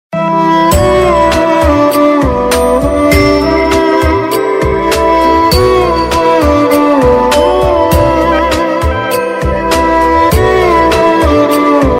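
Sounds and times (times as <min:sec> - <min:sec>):
instrumental ringtone: 0:00.7 - 0:11.8.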